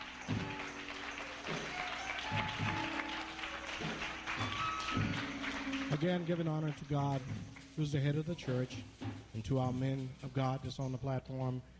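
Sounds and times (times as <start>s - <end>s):
audience applause: 0.0s - 7.6s
speech: 6.0s - 11.7s.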